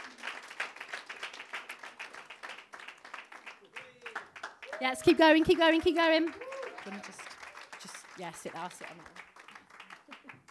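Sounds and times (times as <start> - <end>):
audience clapping as panel guests walk onto a stage: 0.0 - 10.4
speech: 4.8 - 7.3, 8.2 - 9.2.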